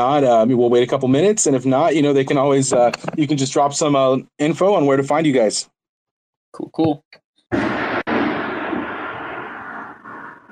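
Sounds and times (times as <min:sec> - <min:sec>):
speech: 0:00.0 - 0:05.7, 0:06.5 - 0:07.8
thunder from a lightning storm: 0:07.5 - 0:10.5.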